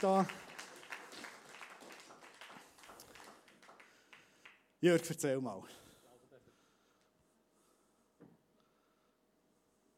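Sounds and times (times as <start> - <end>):
speech: 0.0 - 0.4, 4.8 - 5.8
audience clapping: 0.0 - 4.8.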